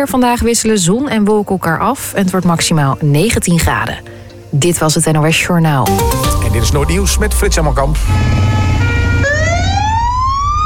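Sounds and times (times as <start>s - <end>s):
speech: 0.0s - 9.3s
fire engine sirens wailing: 6.2s - 10.6s.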